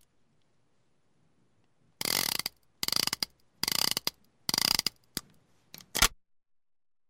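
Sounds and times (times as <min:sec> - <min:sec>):
38 calibre revolver sounds: 0:02.0 - 0:06.2.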